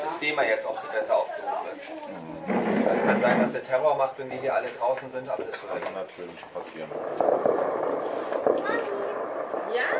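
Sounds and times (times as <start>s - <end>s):
steady murmur: 0.0s - 9.9s
speech: 0.2s - 9.9s
fireworks popping: 1.9s - 3.6s, 4.3s - 9.9s.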